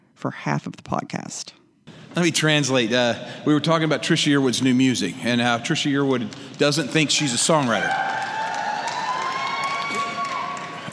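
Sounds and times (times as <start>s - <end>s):
speech: 0.2s - 8.4s
audience applause: 6.0s - 10.9s.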